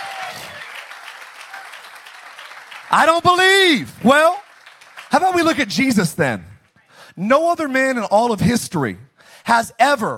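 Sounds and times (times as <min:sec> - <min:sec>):
audience hand clapping: 0:00.0 - 0:06.0
speech: 0:02.9 - 0:04.4, 0:05.1 - 0:06.5, 0:07.2 - 0:10.1.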